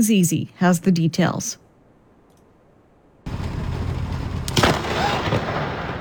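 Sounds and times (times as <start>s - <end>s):
speech: 0.0s - 1.6s
thunder from a lightning storm: 3.3s - 5.9s.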